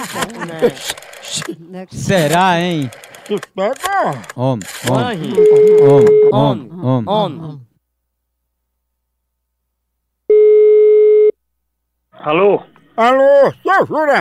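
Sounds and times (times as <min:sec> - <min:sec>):
laughter: 0:00.0 - 0:07.4
speech: 0:00.0 - 0:07.7, 0:12.2 - 0:14.1
telephone ringback tone on an outgoing call: 0:05.3 - 0:06.3, 0:10.3 - 0:11.3.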